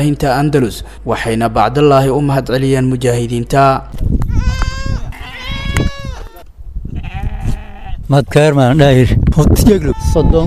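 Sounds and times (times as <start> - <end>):
speech: 0.0 - 4.6, 8.1 - 10.4
goats bleating among livestock being handed out: 4.3 - 8.0, 9.7 - 10.4.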